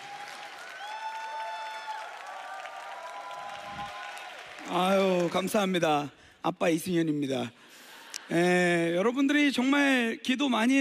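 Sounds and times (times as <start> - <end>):
audience applause: 0.0 - 5.8
speech: 4.6 - 7.6, 8.3 - 10.7.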